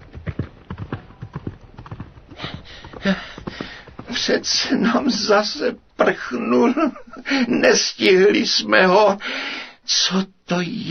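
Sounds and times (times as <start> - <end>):
horse hooves galloping away: 0.0 - 5.4
speech: 3.0 - 3.3, 4.2 - 10.8.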